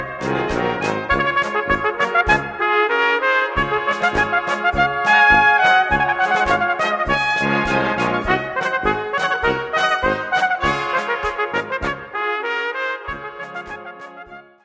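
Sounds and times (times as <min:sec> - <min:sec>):
trumpet sound from Bohemia: 0:00.0 - 0:14.6.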